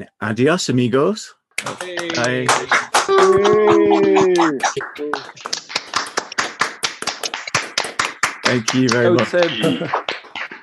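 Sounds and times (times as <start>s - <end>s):
speech: 0.0s - 5.6s, 8.5s - 10.0s
scattered hand claps over video call: 1.6s - 10.6s
voiced cheering over video call: 1.8s - 5.2s
laughter: 2.0s - 5.6s, 8.7s - 10.1s.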